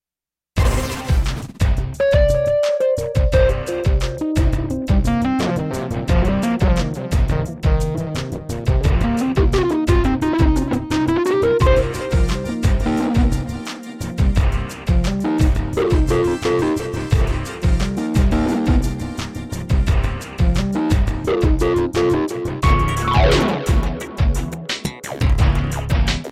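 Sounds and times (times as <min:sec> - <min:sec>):
Roland JV1010 synthesizer: 0:00.6 - 0:26.2.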